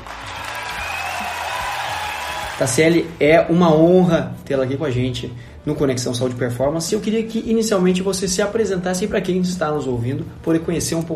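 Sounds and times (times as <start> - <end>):
applause: 0.0 - 3.0
speech: 2.6 - 11.1.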